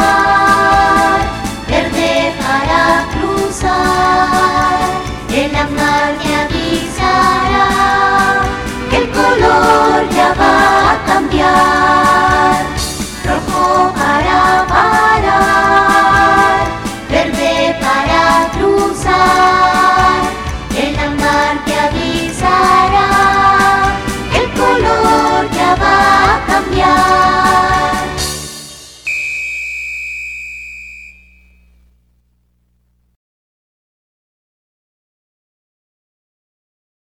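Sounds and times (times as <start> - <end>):
vocal music: 0.0 - 29.1.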